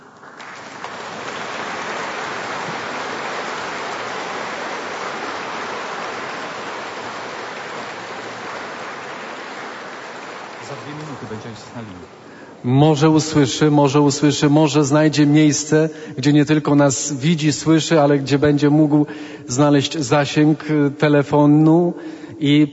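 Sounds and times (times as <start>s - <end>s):
people clapping: 0.0s - 12.4s
speech: 10.7s - 22.7s.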